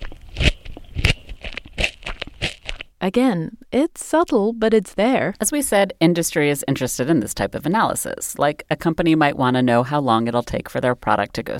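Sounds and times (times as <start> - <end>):
biting into a crunchy carrot: 0.0 - 3.0
speech: 3.0 - 11.5.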